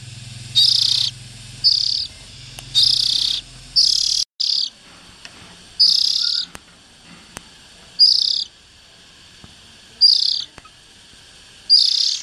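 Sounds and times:
low steady hum: 0.0s - 12.2s
Oriental magpie-robin rasping: 0.6s - 4.8s, 5.8s - 6.6s, 7.9s - 8.6s, 10.0s - 10.8s, 11.7s - 12.2s.

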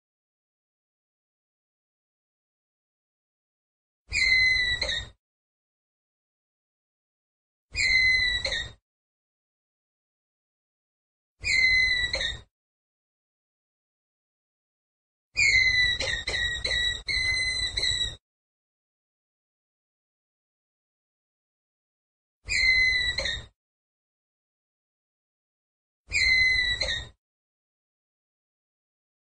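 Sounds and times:
ground squirrel whistled call: 4.1s - 5.1s, 7.8s - 8.8s, 11.4s - 12.4s, 15.4s - 18.2s, 22.5s - 23.5s, 26.1s - 27.1s.

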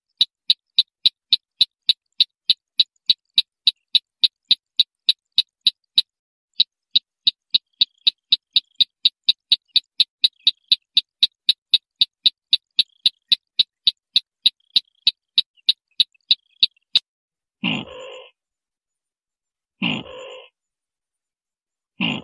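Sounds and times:
white-breasted waterhen train of sharp clicks: 0.0s - 17.0s.

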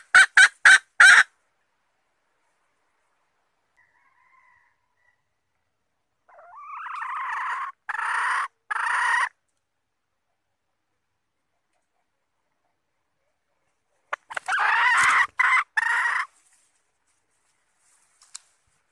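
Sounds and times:
Red junglefowl squawking: 0.0s - 1.3s, 6.3s - 9.4s, 14.1s - 16.4s.

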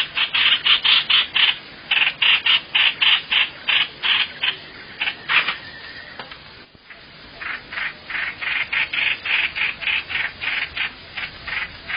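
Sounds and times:
bird rasping calls: 0.0s - 6.2s, 6.8s - 11.9s.

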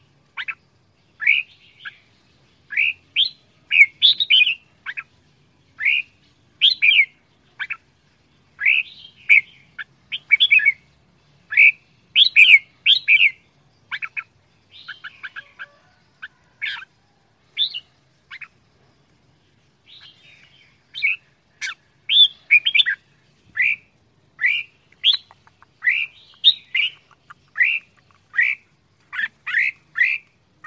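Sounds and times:
red-whiskered bulbul whistling song: 0.0s - 30.6s.

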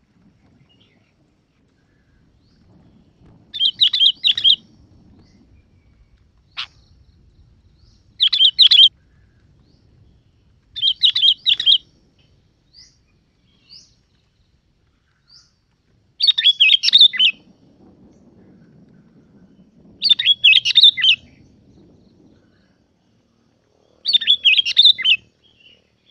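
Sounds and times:
Yellow-vented bulbul bubbly chirping song: 3.5s - 4.6s, 6.5s - 8.9s, 10.8s - 11.8s, 16.2s - 17.4s, 20.0s - 21.4s, 24.0s - 25.2s.

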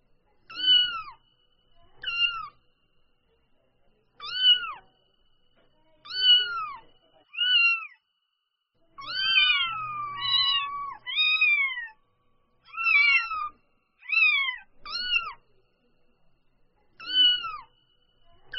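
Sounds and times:
domestic cat kitten mewing: 0.5s - 1.2s, 2.0s - 2.5s, 6.1s - 8.0s, 9.0s - 12.0s, 12.7s - 15.4s, 17.0s - 17.7s.

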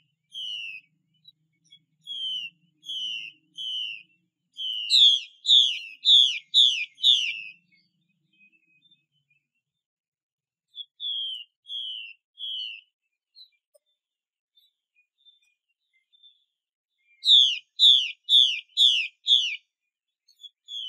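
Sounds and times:
Chinese hwamei whistling: 0.0s - 0.9s, 1.6s - 9.0s, 10.7s - 12.9s, 17.1s - 19.6s, 20.4s - 20.8s.

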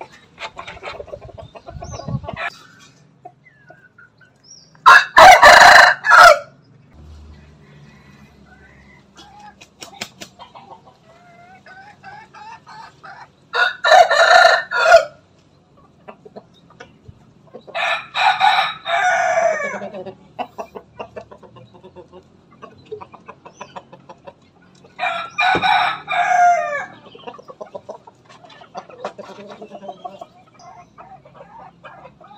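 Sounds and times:
chicken clucking: 0.0s - 5.8s, 7.3s - 32.3s
Bangkok rooster crowing: 4.8s - 6.6s, 7.4s - 9.2s, 13.5s - 15.2s, 17.8s - 19.9s, 25.0s - 27.0s.

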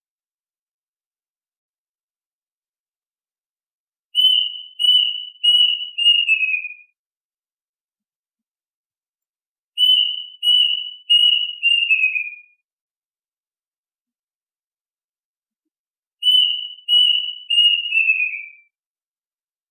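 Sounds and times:
duck whistled calls: 4.2s - 6.8s, 9.8s - 12.4s, 16.2s - 18.6s.

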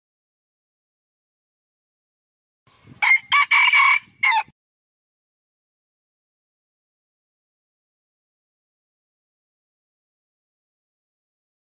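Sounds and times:
red junglefowl rooster crowing: 3.0s - 4.5s.

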